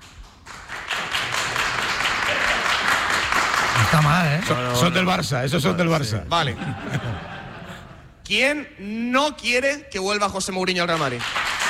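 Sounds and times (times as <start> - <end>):
crowd applauding: 0.0 - 5.0, 10.9 - 11.6
laughter: 2.1 - 2.9, 5.6 - 8.2
speech: 3.8 - 7.3, 8.3 - 11.5.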